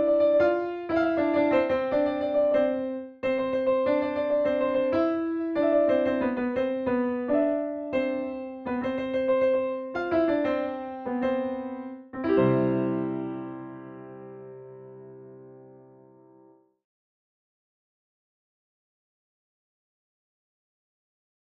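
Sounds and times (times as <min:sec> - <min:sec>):
piano piece: 0:00.0 - 0:16.7.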